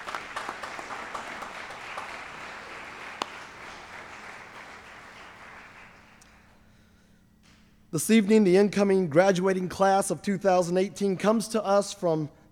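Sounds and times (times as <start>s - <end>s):
audience applause: 0.0s - 6.2s
speech: 7.9s - 12.5s.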